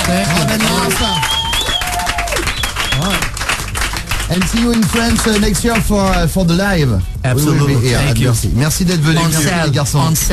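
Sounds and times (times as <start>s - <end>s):
audience applauding: 0.0s - 6.3s
speech: 0.1s - 1.4s, 4.3s - 10.3s
rising whistle-like cheers: 0.2s - 3.2s.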